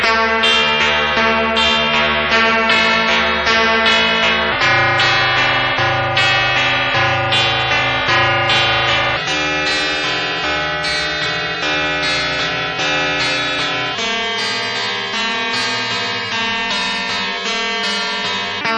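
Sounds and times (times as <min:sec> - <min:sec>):
ringing: 0:00.2 - 0:18.7.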